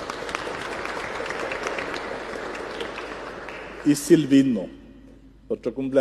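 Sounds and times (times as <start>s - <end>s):
audience applause: 0.0s - 4.3s
speech: 3.8s - 4.8s, 5.5s - 5.9s.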